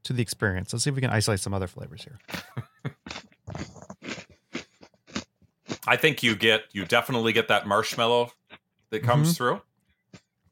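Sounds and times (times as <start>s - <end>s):
speech: 0.0s - 2.7s, 5.9s - 9.7s
crunchy chewing of a s'mores-flavored Oreo cookie: 2.3s - 7.2s.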